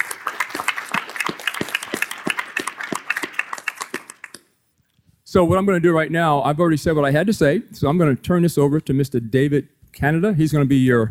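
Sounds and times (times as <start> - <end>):
audience applause: 0.0 - 4.5
speech: 5.3 - 11.0.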